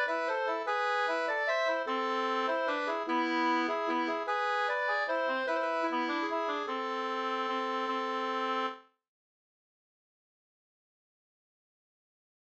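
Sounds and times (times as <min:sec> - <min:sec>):
waltz music: 0:00.0 - 0:08.8.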